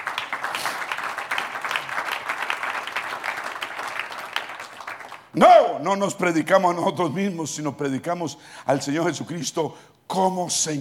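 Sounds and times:
audience applause: 0.0 - 5.3
speech: 5.3 - 10.7.

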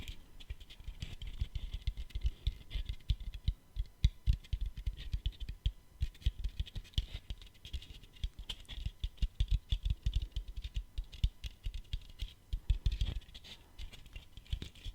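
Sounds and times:
rapid tapping like fingers on keys: 0.6 - 14.9.

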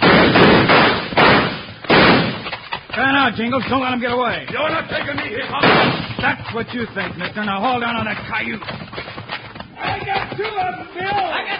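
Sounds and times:
gunshots: 0.0 - 2.6, 4.8 - 6.6
speech: 3.2 - 9.1, 9.8 - 11.5.

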